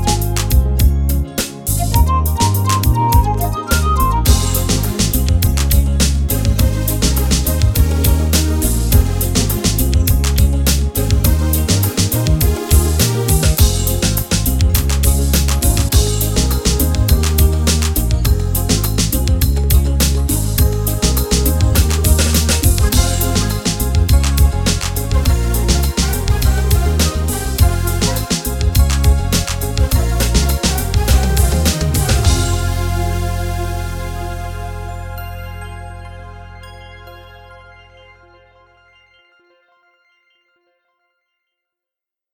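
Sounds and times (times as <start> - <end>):
afro pop music: 0.0 - 39.0.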